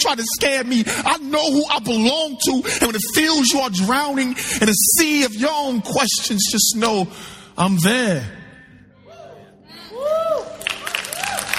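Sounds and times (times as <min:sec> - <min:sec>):
speech: 0:00.0 - 0:08.4
audience clapping after a performance: 0:10.6 - 0:11.5.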